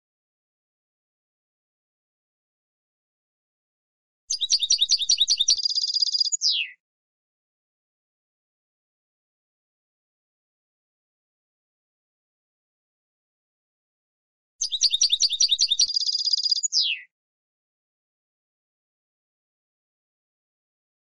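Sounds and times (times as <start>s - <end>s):
European goldfinch twittering song: 4.3s - 6.8s, 14.6s - 17.1s.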